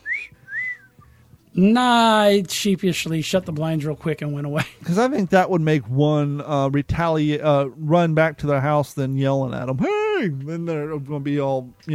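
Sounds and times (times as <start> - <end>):
wolf whistle: 0.0 - 1.2
speech: 1.6 - 11.9.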